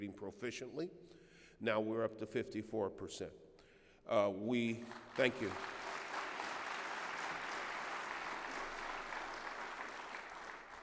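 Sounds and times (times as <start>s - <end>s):
speech: 0.0s - 5.8s
audience applause: 4.9s - 10.8s.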